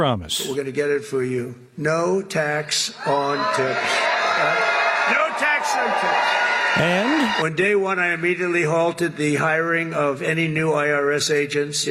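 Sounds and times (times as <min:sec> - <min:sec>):
speech: 0:00.0 - 0:11.9
crowd cheering and whooping at a Las Vegas rally for President Trump: 0:03.0 - 0:07.4.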